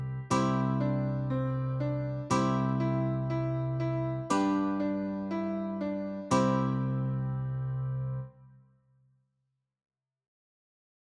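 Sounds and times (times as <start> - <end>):
nursery rhyme melody on piano: 0.0 - 8.3.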